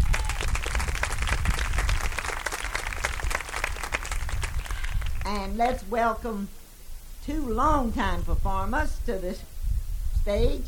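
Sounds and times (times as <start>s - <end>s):
audience clapping for stage performers: 0.0s - 5.3s
speech: 5.3s - 6.6s, 7.2s - 9.5s, 10.3s - 10.6s.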